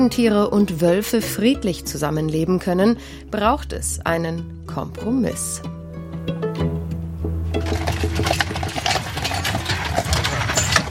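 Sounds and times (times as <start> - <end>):
speech: 0.0 - 6.4
carriage wheels rumbling: 7.5 - 10.9
horse hooves clip-clopping on a carriage ride: 7.5 - 10.9.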